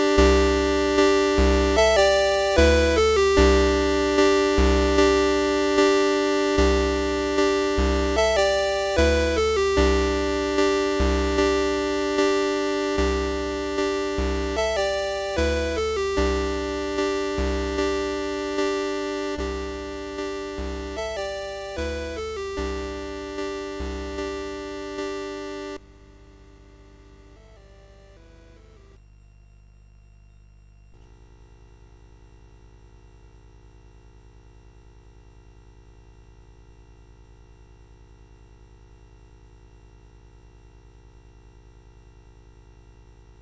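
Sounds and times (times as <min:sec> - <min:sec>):
song played on CSG8580R5: 0:00.0 - 0:29.0.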